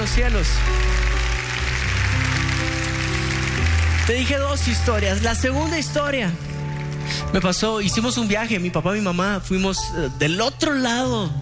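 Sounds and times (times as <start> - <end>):
audience applause: 0.0 - 5.8
speech: 0.2 - 1.2, 4.1 - 6.5, 7.1 - 11.4.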